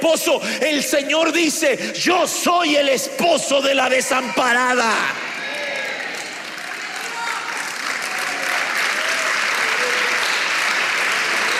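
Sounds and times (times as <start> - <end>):
speech: 0.0 - 5.4
audience clapping: 5.0 - 11.5.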